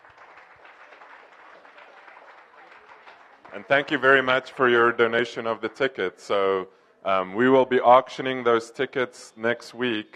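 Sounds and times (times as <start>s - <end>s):
crowd applause: 0.0s - 5.9s
speech: 3.5s - 10.1s.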